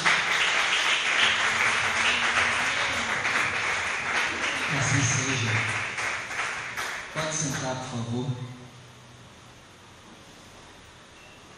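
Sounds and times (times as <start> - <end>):
audience applause: 0.0 - 7.7
speech: 7.7 - 8.6.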